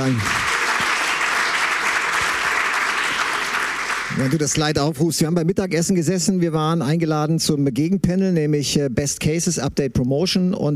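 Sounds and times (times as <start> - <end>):
speech: 0.0 - 0.4, 4.2 - 10.7
audience applause: 0.0 - 4.8.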